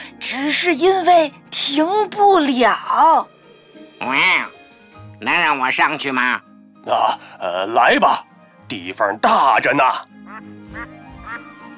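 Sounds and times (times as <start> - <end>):
speech: 0.3 - 3.4, 4.0 - 4.6, 5.2 - 11.0
duck quacking: 10.2 - 11.5.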